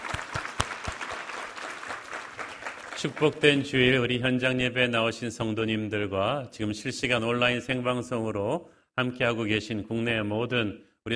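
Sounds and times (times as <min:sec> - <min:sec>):
audience applause: 0:00.0 - 0:03.8
speech: 0:03.0 - 0:11.1.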